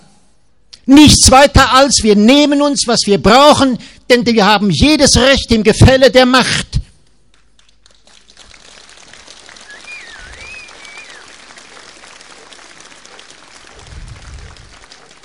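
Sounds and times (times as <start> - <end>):
speech: 0.9 - 6.8
audience applause: 7.3 - 15.2.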